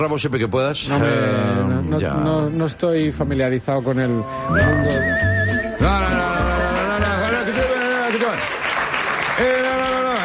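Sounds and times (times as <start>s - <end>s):
speech: 0.0s - 6.2s
applause: 6.3s - 10.2s.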